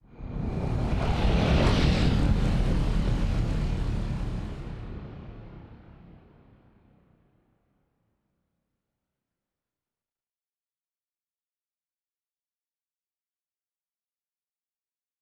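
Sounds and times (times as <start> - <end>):
colony ship moving: 0.2 - 5.8.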